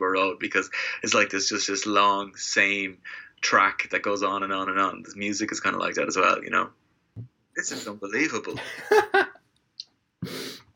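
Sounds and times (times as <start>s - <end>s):
speech: 0.0s - 9.2s
laughter: 8.5s - 9.4s
person sneezing: 10.2s - 10.6s.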